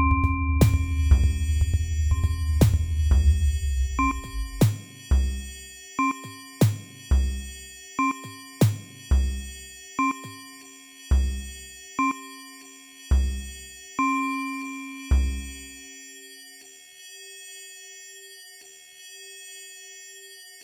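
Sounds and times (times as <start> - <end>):
Waldorf Rack Attack percussion synthesizer module: 0.2 - 12.2, 13.1 - 14.1, 15.0 - 15.8.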